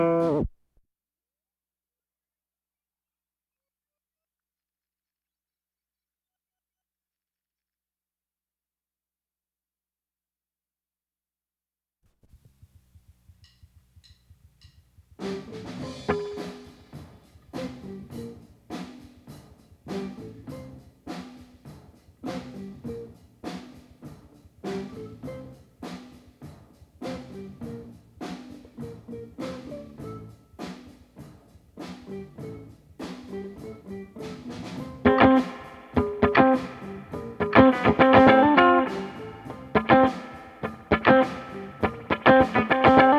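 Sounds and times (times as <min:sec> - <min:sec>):
guitar: 0:00.0 - 0:00.5, 0:15.2 - 0:21.6, 0:22.2 - 0:26.2, 0:27.0 - 0:31.2, 0:31.8 - 0:43.1.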